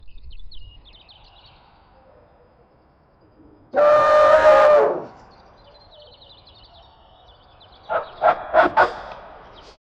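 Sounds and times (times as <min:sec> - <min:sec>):
eagle attack call: 0:03.8 - 0:05.2.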